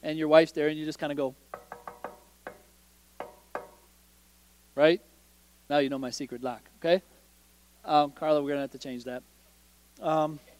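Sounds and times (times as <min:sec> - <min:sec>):
speech: 0:00.0 - 0:01.5, 0:04.8 - 0:05.1, 0:05.7 - 0:07.1, 0:07.8 - 0:09.3, 0:10.0 - 0:10.5
knocking on a hotel room door: 0:01.5 - 0:03.8.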